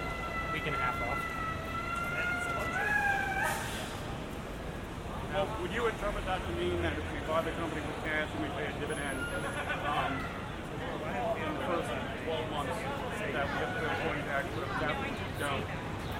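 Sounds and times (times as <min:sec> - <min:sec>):
siren: 0:00.0 - 0:03.7
traffic rumble between Grand Central and Times Square: 0:00.0 - 0:16.1.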